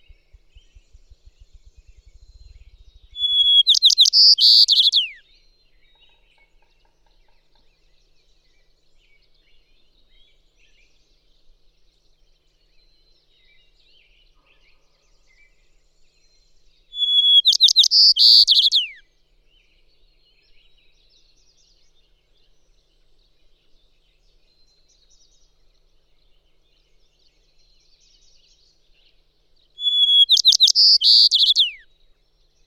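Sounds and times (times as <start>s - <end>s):
White-crowned Sparrow calling: 0.0s - 5.2s, 17.0s - 19.0s, 29.8s - 31.8s.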